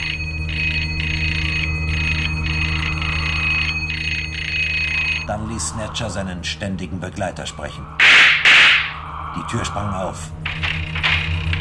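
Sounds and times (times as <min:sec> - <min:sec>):
electric doorbell ringing: 0:00.0 - 0:05.3
steady low hum: 0:00.0 - 0:11.5
speech: 0:05.3 - 0:08.0, 0:09.3 - 0:10.8.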